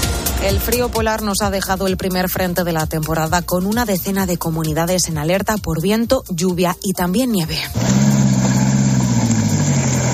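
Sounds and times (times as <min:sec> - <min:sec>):
speech: 0:00.4 - 0:08.2
vehicle engine droning during snow rescue: 0:07.7 - 0:10.1.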